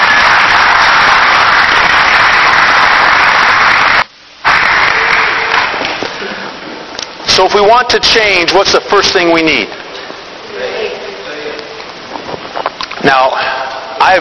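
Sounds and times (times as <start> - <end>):
audience applause: 0.0 - 6.6
speech: 7.4 - 9.8, 13.0 - 14.2.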